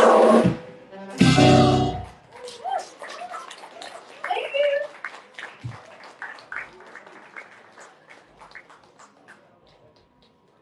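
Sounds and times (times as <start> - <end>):
faint crowd murmur: 0.9 - 10.6
audience applause: 2.2 - 10.6.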